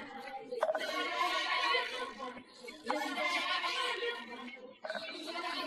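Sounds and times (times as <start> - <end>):
vocal noises: 0.6 - 3.5, 4.7 - 5.6.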